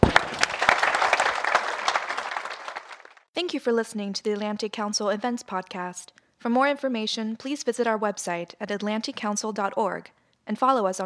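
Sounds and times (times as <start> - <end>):
audience applause: 0.0 - 3.3
speech: 3.4 - 11.0.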